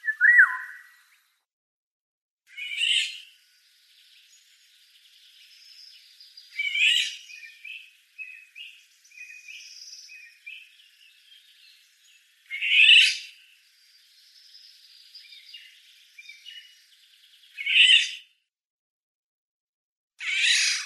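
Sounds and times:
oriole song of slurred whistled phrases: 0.0s - 1.2s, 4.0s - 18.2s.

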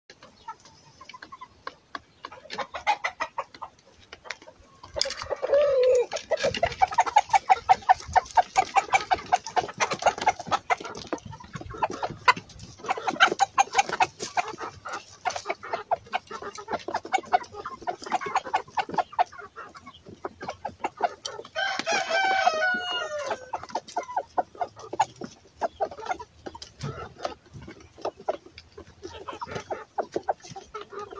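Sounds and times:
chickens clucking: 0.1s - 31.1s
rooster crowing: 21.6s - 23.5s.

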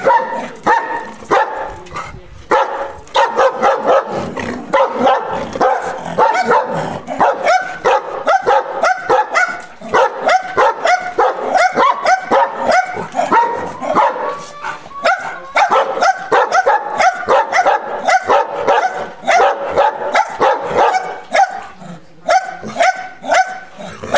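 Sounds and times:
dog barking: 0.0s - 1.8s, 2.5s - 24.1s.

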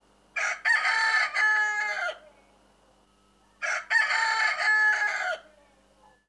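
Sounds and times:
rooster crowing: 0.4s - 2.3s, 3.6s - 5.5s.

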